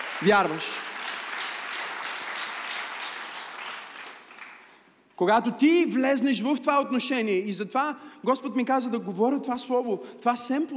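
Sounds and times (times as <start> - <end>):
audience applauding: 0.0 - 4.8
speech: 0.2 - 0.9, 5.2 - 10.7.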